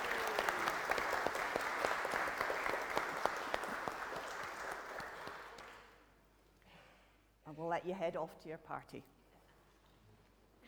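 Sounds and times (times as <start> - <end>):
audience applause: 0.0 - 5.8
speech: 7.8 - 9.1.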